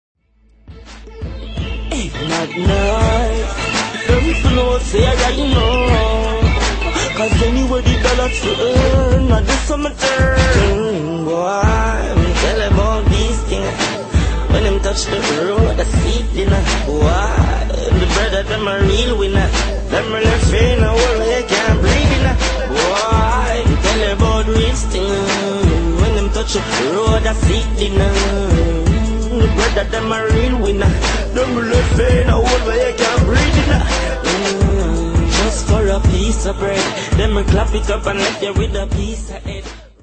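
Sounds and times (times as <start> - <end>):
riddim beat ringtone: 0.7 - 10.9, 11.6 - 39.8.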